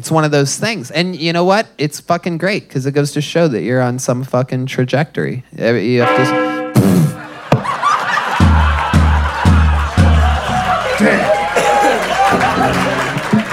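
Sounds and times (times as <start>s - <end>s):
speech: 0.0s - 6.5s
crowd murmur: 7.2s - 13.5s
scattered laughter: 7.2s - 13.5s
audience clapping: 7.3s - 13.5s.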